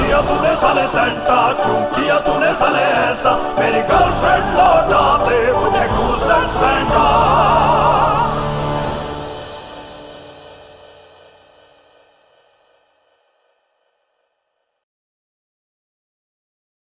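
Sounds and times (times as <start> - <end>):
Christmas song: 0.0 - 12.3.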